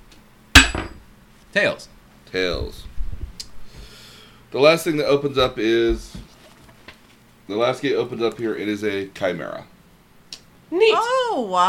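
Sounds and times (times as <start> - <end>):
coin landing on a hard surface: 0.6 - 1.0
speech: 1.5 - 2.9, 4.5 - 6.2, 7.5 - 9.7, 10.7 - 11.6.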